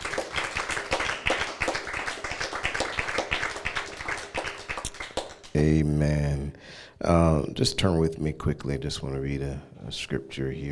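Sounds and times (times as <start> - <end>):
church congregation clapping in praise during a service: 0.0 - 5.8
speech: 5.6 - 10.7.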